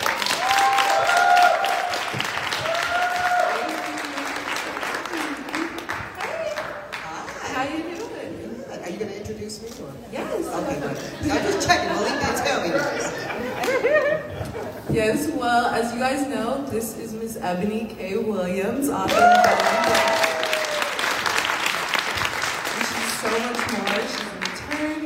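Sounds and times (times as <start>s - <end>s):
audience round of applause: 0.0s - 7.8s, 19.1s - 24.9s
laughter: 10.4s - 14.9s
speech: 16.0s - 20.1s.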